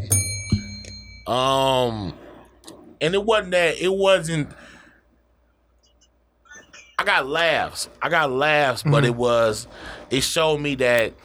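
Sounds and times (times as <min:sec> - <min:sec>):
bell ringing: 0:00.0 - 0:01.8
speech: 0:01.3 - 0:02.2, 0:03.0 - 0:04.7, 0:07.0 - 0:11.2.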